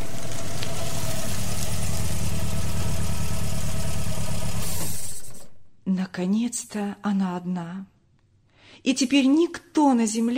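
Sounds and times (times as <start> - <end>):
car engine idling then switched off: 0.0 - 5.6
speech: 6.2 - 7.9, 8.8 - 10.3.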